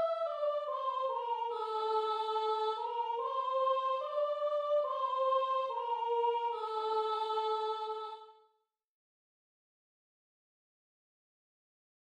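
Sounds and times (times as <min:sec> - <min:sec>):
soprano singing: 0:00.0 - 0:08.4.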